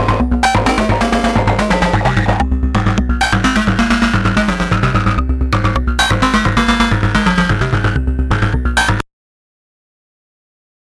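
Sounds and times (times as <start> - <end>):
modular synthesizer: 0.0 - 9.0.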